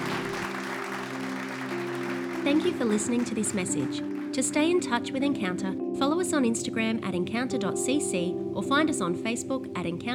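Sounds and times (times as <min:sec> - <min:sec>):
audience clapping and cheering: 0:00.0 - 0:04.7
speech: 0:02.4 - 0:10.1.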